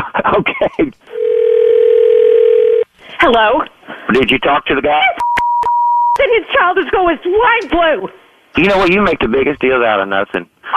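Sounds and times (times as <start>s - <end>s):
speech: 0.2s - 1.3s, 3.2s - 5.2s, 6.2s - 10.7s
steady telephone dial tone: 1.1s - 2.9s.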